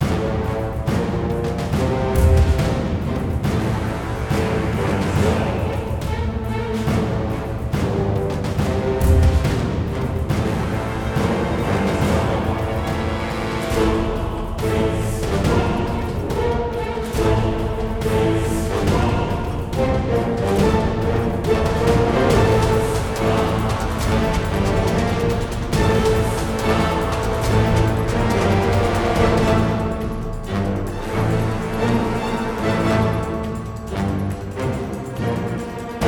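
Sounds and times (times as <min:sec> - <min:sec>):
dungeon boss battle music: 0:00.0 - 0:36.0.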